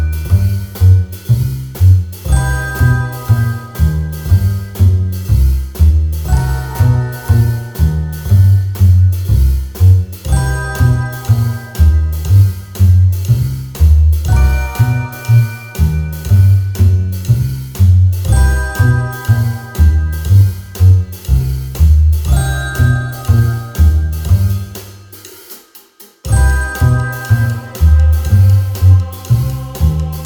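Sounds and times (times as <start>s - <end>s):
funny playful mysterious cartoon music: 0.0s - 25.3s, 26.2s - 30.2s.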